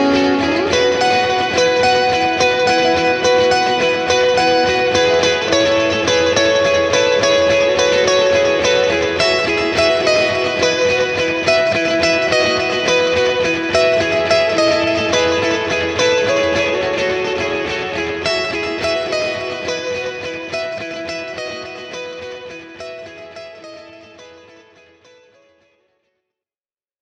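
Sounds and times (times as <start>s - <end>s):
electric guitars through Vox AC30S1 amplifier: 0.0s - 25.0s.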